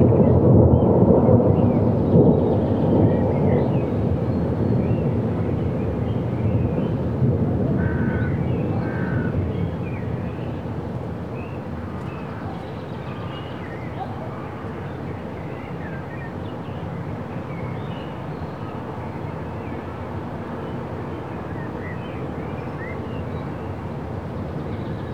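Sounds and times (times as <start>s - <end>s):
distant thunder rolling: 0.0s - 12.5s.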